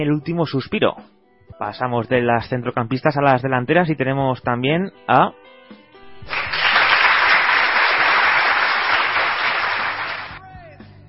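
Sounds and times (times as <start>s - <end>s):
speech: 0.0s - 6.4s
applause: 6.2s - 10.4s.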